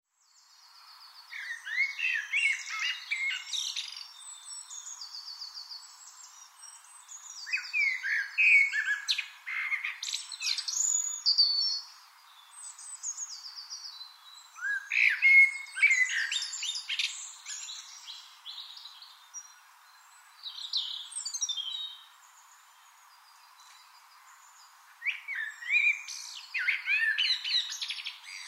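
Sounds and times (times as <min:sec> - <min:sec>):
Eurasian blackbird song: 0:00.0 - 0:28.4.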